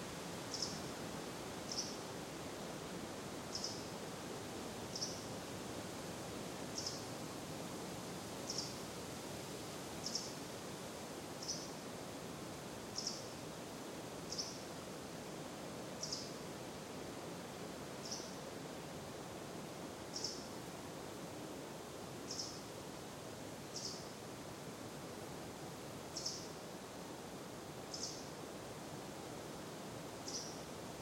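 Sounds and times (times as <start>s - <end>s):
wind in a forest: 0.0s - 30.9s.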